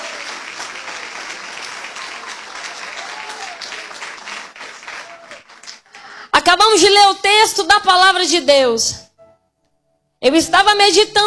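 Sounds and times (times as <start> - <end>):
audience clapping hands: 0.0 - 6.2
speech: 6.4 - 9.0, 10.2 - 11.2.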